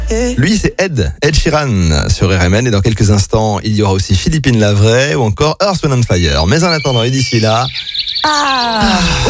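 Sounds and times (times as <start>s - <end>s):
speech: 0.1s - 9.2s
human voice imitating bird calls: 7.7s - 9.2s.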